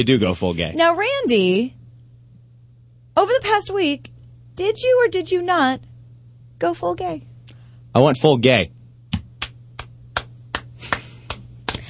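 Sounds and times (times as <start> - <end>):
speech: 0.0 - 1.8, 3.2 - 5.9, 6.6 - 7.3, 7.9 - 8.8
hands clapping: 9.1 - 11.8.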